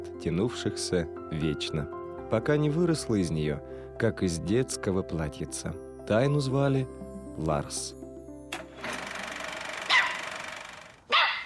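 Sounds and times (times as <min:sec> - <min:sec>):
speech: 0:00.2 - 0:08.0
aggressive dog barking: 0:09.9 - 0:10.3, 0:11.1 - 0:11.4.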